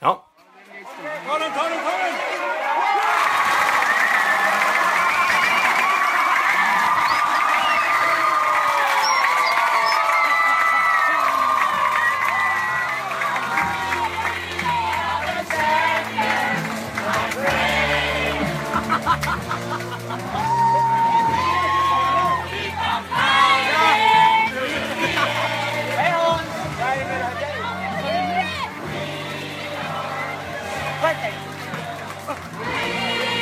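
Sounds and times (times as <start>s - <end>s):
crowd cheering in the stands at the final out of a championship game: 0.5s - 33.4s
laughter: 4.0s - 33.4s
crowd whistles: 5.0s - 6.1s, 6.9s - 10.6s.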